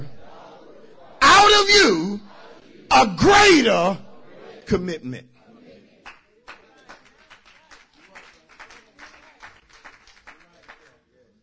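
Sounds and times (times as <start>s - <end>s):
speech: 1.5s - 2.2s, 2.9s - 4.0s, 4.7s - 5.3s
audience clapping: 6.0s - 11.1s.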